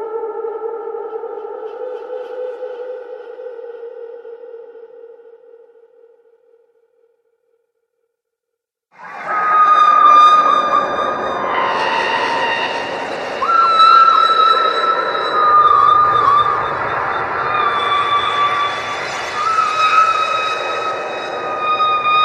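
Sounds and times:
horror screams: 0:09.0 - 0:22.2.

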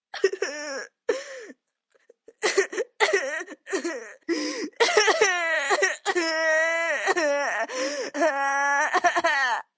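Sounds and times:
boy crying and sobbing: 0:00.2 - 0:01.5, 0:02.3 - 0:09.7
boy coughing while crying: 0:02.4 - 0:04.0, 0:04.7 - 0:06.3.

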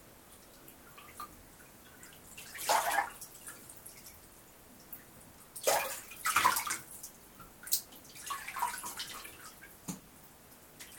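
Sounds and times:
person having a bath in water: 0:00.7 - 0:04.2, 0:05.6 - 0:09.7.

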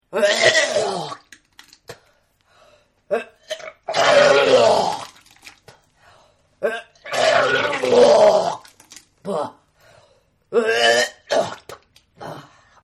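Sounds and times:
person vomiting: 0:00.1 - 0:01.3, 0:03.1 - 0:05.2, 0:06.6 - 0:09.6, 0:10.5 - 0:12.5.

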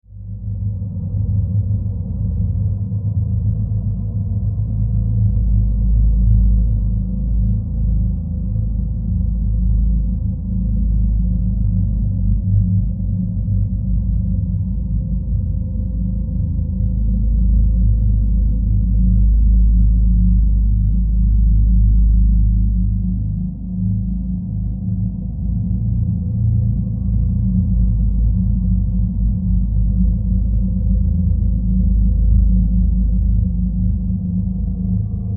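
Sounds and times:
horror demonic low drone rumble: 0:00.0 - 0:35.3.

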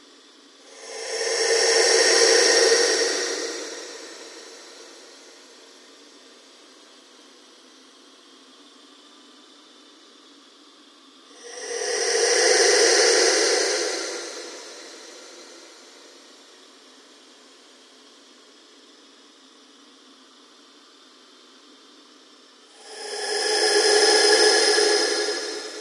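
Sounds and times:
ambient drone with slow sweep: 0:00.5 - 0:07.5, 0:11.3 - 0:17.3, 0:22.6 - 0:25.7.

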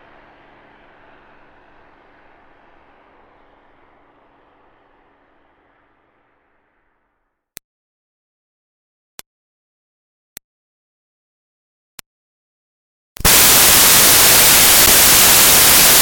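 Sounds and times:
2005 Smartcar Fortwo: 0:00.0 - 0:07.2, 0:13.2 - 0:16.0.

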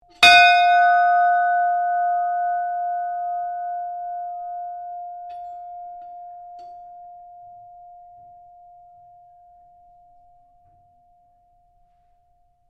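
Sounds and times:
ship's bell ringing: 0:00.2 - 0:09.5.

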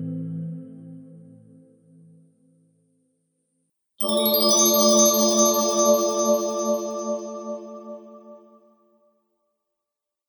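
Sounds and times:
treasure game win jingle: 0:04.0 - 0:07.5.

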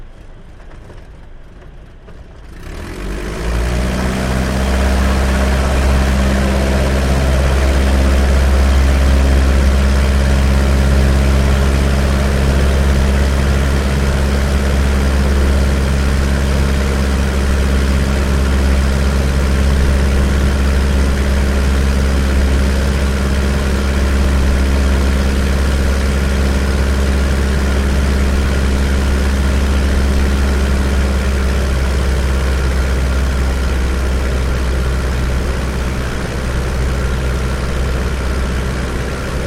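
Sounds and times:
de Havilland DH82A Tiger Moth engine during touch and go, interior: 0:00.0 - 0:39.4.

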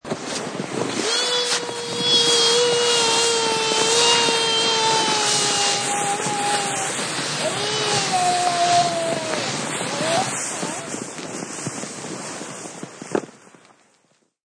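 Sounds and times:
child sledding down hill: 0:00.0 - 0:13.7
child yelling joyously: 0:01.1 - 0:11.0.

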